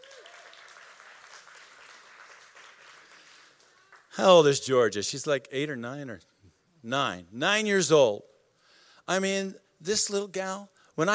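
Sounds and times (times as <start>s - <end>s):
audience clapping: 0.0s - 4.3s
speech: 4.2s - 8.3s, 9.1s - 11.1s.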